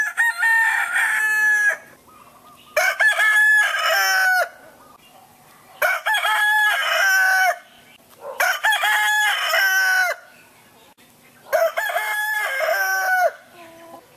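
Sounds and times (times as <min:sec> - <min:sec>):
rooster crowing: 0:00.0 - 0:02.0, 0:02.8 - 0:04.6, 0:05.8 - 0:07.7, 0:08.4 - 0:10.3, 0:11.5 - 0:13.6.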